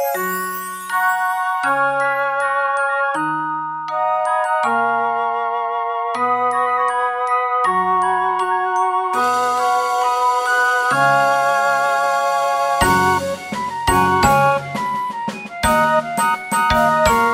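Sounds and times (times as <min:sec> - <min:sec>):
rock percussion: 0:00.0 - 0:05.2, 0:06.2 - 0:17.3
flute corps playing rock: 0:00.0 - 0:17.3.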